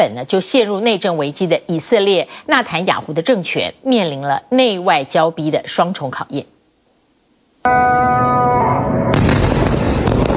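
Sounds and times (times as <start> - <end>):
speech: 0.0 - 6.5, 7.6 - 8.9
ringing tone: 7.7 - 9.2
explosions from airstrikes: 9.0 - 10.3.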